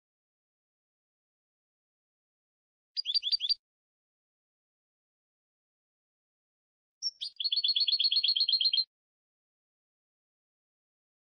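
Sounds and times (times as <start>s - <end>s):
European goldfinch twittering trill: 3.0s - 3.6s, 7.0s - 8.8s.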